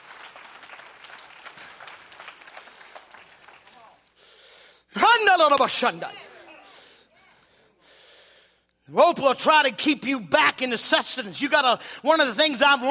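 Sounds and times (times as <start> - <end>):
audience clapping: 0.0 - 4.4
speech: 5.4 - 6.2, 8.9 - 12.8.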